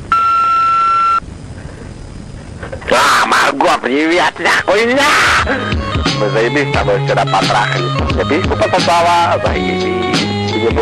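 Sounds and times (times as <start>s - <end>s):
answering machine beep: 0.1s - 1.2s
speech: 2.9s - 10.8s
laughter: 5.4s - 9.6s.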